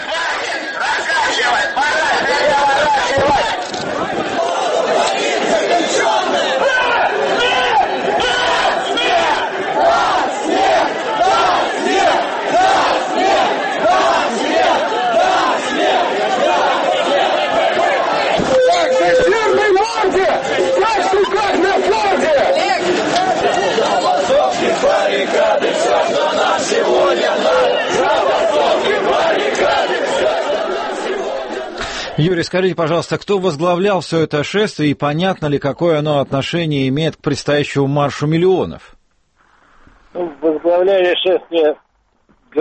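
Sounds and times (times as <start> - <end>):
marchers shouting slogans: 0.0 - 31.8
speech: 32.2 - 39.0, 40.2 - 41.8.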